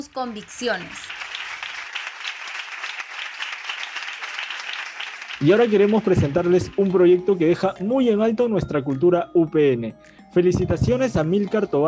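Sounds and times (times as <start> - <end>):
speech: 0.0 - 1.2, 5.4 - 11.8
crowd applause: 0.0 - 7.1.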